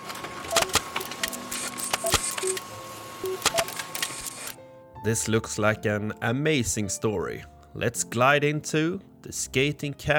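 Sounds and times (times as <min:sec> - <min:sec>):
printer printing out pages: 0:00.0 - 0:04.6
speech: 0:05.0 - 0:10.1.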